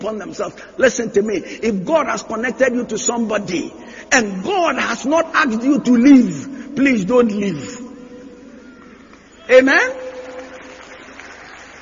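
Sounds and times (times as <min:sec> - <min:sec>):
speech: 0:00.0 - 0:07.8, 0:09.5 - 0:10.1
audience clapping: 0:08.9 - 0:11.8.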